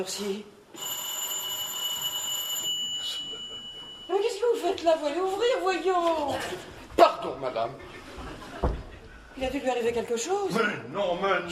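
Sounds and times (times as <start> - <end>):
speech: 0.0 - 0.9, 4.1 - 7.9, 9.4 - 11.4
electric doorbell ringing: 0.8 - 4.6.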